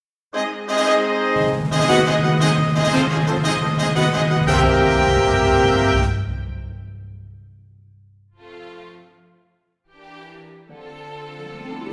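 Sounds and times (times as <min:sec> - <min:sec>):
accompaniment backing track music: 0:00.4 - 0:07.3.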